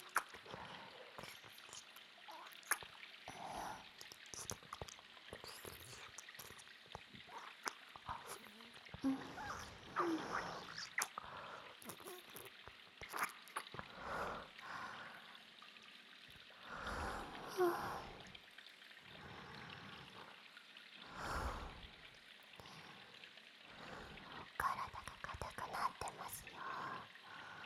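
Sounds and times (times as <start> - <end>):
ear licking: 0.0 - 0.6, 4.0 - 13.8
water dripping: 0.0 - 27.6.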